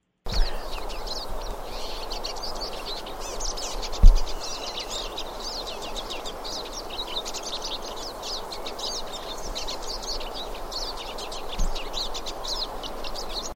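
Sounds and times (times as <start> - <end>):
pine siskin call: 0.3 - 13.5.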